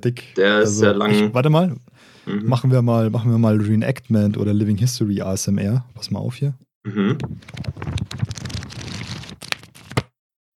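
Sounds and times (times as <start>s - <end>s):
speech: 0.0s - 8.4s
pages of a thick book being leafed through: 7.2s - 10.1s.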